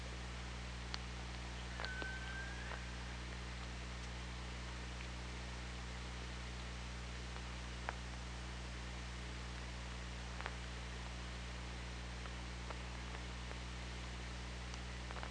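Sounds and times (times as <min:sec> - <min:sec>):
low hum: 0:00.0 - 0:15.2
killer whale call: 0:01.7 - 0:03.3.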